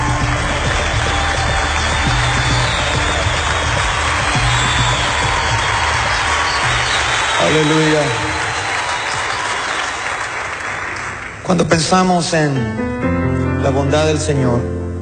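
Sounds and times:
audience applause: 0:00.0 - 0:11.8
speech: 0:07.6 - 0:08.2, 0:11.5 - 0:14.8.

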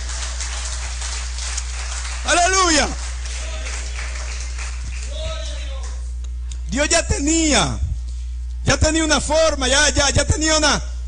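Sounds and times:
audience applause: 0:00.0 - 0:05.9
speech: 0:02.8 - 0:03.0, 0:06.8 - 0:07.9, 0:08.7 - 0:10.9.

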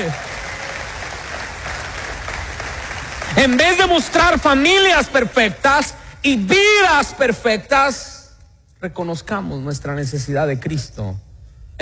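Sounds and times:
audience applause: 0:00.0 - 0:04.4
speech: 0:03.4 - 0:08.1, 0:08.8 - 0:11.2.

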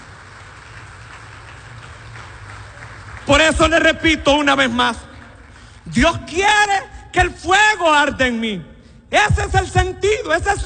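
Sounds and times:
audience applause: 0:00.0 - 0:05.8
speech: 0:03.3 - 0:05.1, 0:05.8 - 0:10.6.

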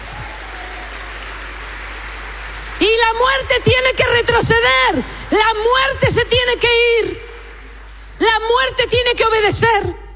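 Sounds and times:
audience applause: 0:00.0 - 0:03.5
speech: 0:03.1 - 0:07.2, 0:08.2 - 0:10.0.

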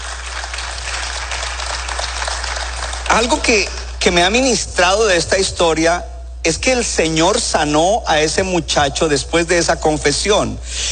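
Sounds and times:
audience applauding: 0:00.0 - 0:03.6
speech: 0:03.1 - 0:10.9.

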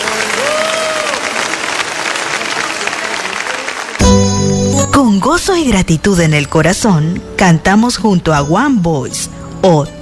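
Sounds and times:
crowd applause: 0:00.0 - 0:04.4
faint tonal whistles or cheers: 0:00.2 - 0:01.5
speech: 0:05.0 - 0:09.9.

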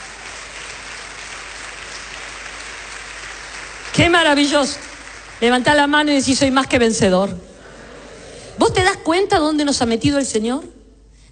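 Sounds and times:
audience applause: 0:00.0 - 0:06.0
speech: 0:04.0 - 0:07.5, 0:08.6 - 0:10.8.

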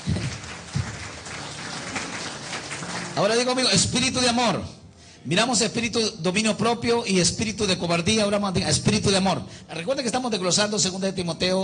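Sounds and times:
audience applause: 0:00.0 - 0:03.5
speech: 0:03.2 - 0:11.6.

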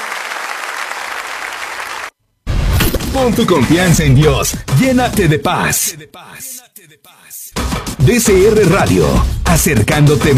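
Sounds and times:
congregation clapping at a church service: 0:00.0 - 0:02.2
speech: 0:03.2 - 0:10.3.

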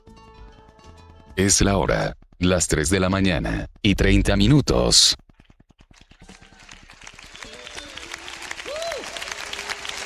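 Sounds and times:
speech: 0:01.4 - 0:05.2
congregation clapping in a fast steady rhythm: 0:05.8 - 0:10.0.

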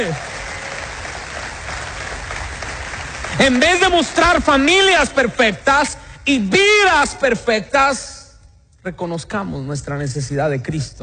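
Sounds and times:
speech: 0:00.0 - 0:00.3, 0:03.4 - 0:08.2, 0:08.8 - 0:11.0
large crowd applauding: 0:00.0 - 0:05.2.

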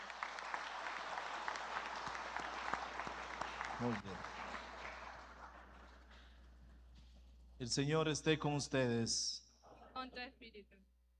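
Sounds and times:
audience applauding: 0:00.0 - 0:06.8
speech: 0:03.8 - 0:04.4, 0:07.6 - 0:09.4, 0:10.1 - 0:10.9.

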